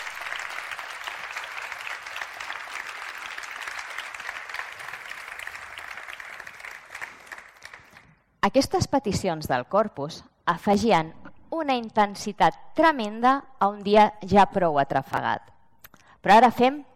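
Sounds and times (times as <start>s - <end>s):
audience applauding: 0.0s - 8.2s
speech: 8.4s - 15.5s, 16.2s - 16.9s.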